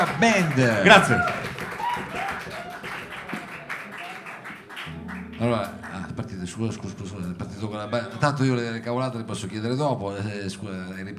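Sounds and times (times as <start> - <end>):
speech: 0.0 - 1.4, 5.4 - 11.1
audience applause for a band: 0.0 - 6.6.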